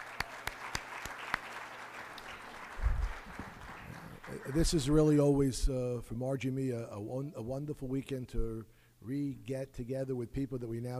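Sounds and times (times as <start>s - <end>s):
audience applause: 0.0s - 5.0s
speech: 4.5s - 10.9s.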